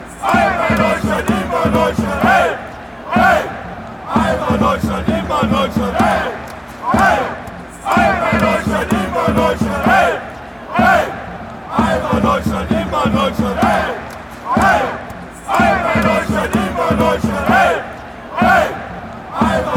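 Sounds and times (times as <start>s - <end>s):
fans chanting: 0.0s - 19.7s.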